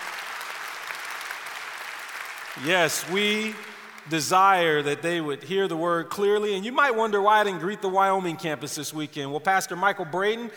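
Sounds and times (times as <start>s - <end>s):
audience applause: 0.0s - 4.2s
speech: 2.6s - 10.5s.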